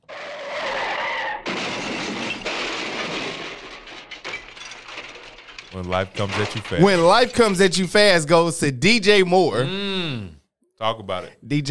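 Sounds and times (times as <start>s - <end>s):
car crash: 0.1s - 7.8s
speech: 5.7s - 11.6s.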